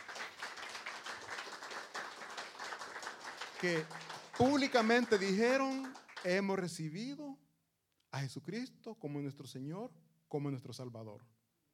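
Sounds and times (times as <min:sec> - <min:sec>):
crowd applauding: 0:00.0 - 0:06.7
speech: 0:03.6 - 0:07.4, 0:08.1 - 0:11.4.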